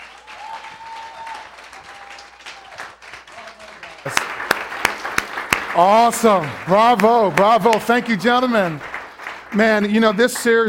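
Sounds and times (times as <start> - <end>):
audience applause: 0.0 - 10.6
speech: 5.8 - 8.9, 9.5 - 10.6.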